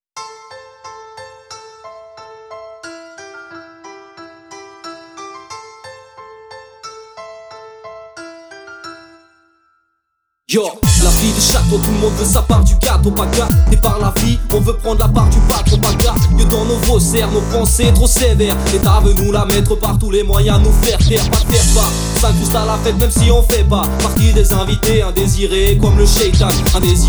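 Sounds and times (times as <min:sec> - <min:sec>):
rap beat: 0:10.8 - 0:27.0.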